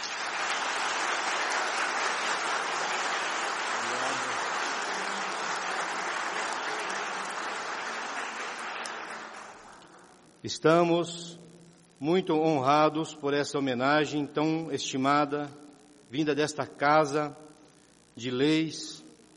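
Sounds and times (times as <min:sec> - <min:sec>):
round of applause: 0:00.0 - 0:10.1
speech: 0:10.4 - 0:11.4, 0:12.0 - 0:17.4, 0:18.2 - 0:19.0.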